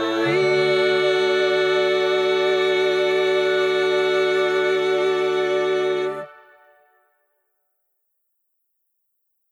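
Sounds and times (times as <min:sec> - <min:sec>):
soprano singing: 0:00.0 - 0:06.8.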